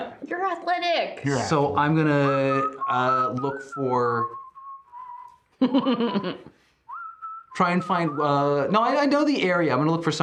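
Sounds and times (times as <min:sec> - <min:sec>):
speech: 0:00.5 - 0:04.4, 0:05.6 - 0:06.6, 0:07.6 - 0:10.2
man whistling a tune while casually walking: 0:02.2 - 0:05.6, 0:06.8 - 0:08.7
laughter: 0:05.6 - 0:06.5.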